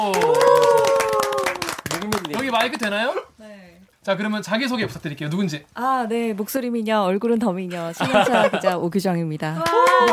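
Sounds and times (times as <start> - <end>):
speech: 0.0 - 0.4, 2.5 - 3.3, 4.0 - 10.1
applause welcoming a guest: 0.0 - 2.9, 9.6 - 10.1
laughter: 7.8 - 8.8.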